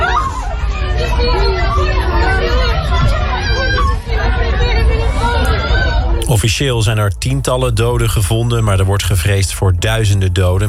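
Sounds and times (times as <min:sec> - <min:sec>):
people running in panic in the street: 0:00.0 - 0:06.2
speech: 0:06.3 - 0:10.6.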